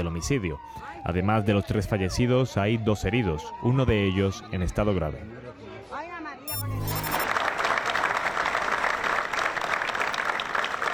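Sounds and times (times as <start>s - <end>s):
speech: 0.0s - 5.4s
crowd applause after a minute of silence: 6.6s - 10.9s.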